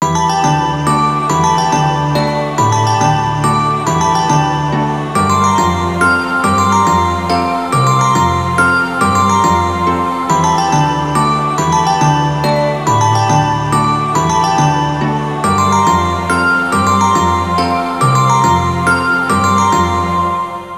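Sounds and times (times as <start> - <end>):
lullaby music: 0.0 - 20.7.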